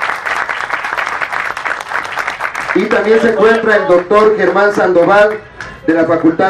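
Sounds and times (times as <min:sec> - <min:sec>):
audience applause: 0:00.0 - 0:04.7
speech: 0:02.8 - 0:06.4.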